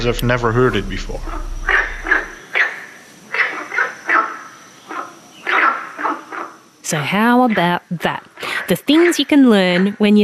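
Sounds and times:
speech: 0.0 - 1.6, 6.9 - 10.2
faint steady high hum: 0.0 - 2.4
water frog croaking: 0.0 - 10.0.

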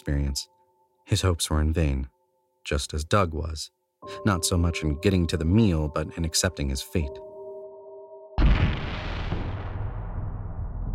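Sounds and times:
speech: 0.0 - 7.3
loud bang: 8.4 - 10.9.

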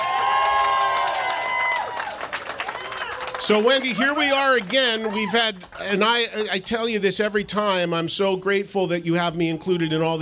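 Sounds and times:
audience applause: 0.0 - 6.6
speech: 3.5 - 10.2.

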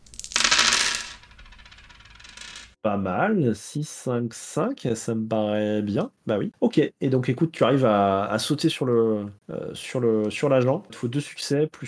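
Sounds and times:
several dice rattling across a hard surface: 0.0 - 2.8
speech: 2.8 - 11.8.

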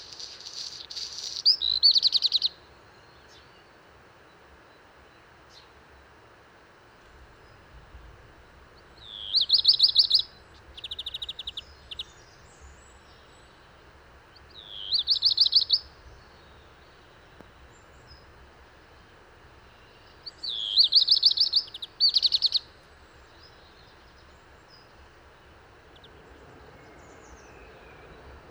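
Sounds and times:
black redstart song: 0.0 - 2.5, 9.0 - 13.3, 14.6 - 15.9, 20.0 - 22.7.

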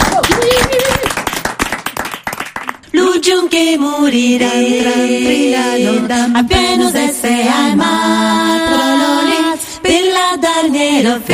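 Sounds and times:
audience applause: 0.0 - 2.8
speech: 3.2 - 9.1, 9.8 - 11.3.

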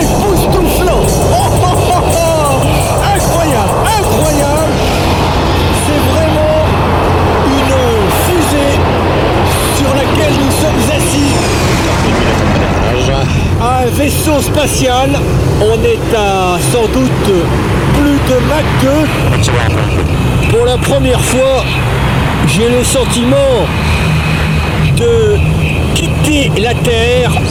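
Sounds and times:
supersonic jet aircraft accelerating: 0.0 - 27.4
speech: 18.4 - 24.2, 25.0 - 25.5, 26.2 - 27.4.

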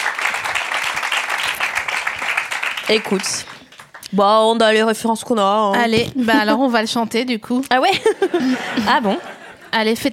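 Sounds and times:
audience applause: 0.0 - 4.0
speech: 2.9 - 3.5, 4.1 - 10.1
laughter: 6.2 - 6.7, 7.9 - 10.0.

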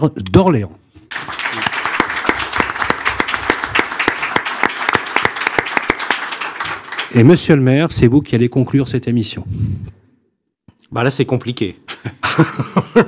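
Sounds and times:
speech: 0.0 - 0.8, 7.1 - 10.0, 10.9 - 13.0
audience applause: 1.1 - 7.4
laughter: 11.9 - 13.0.

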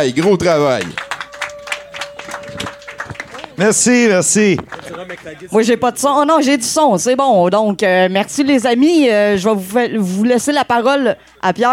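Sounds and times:
speech: 0.0 - 1.0, 3.6 - 11.7
audience applause: 0.0 - 5.5.

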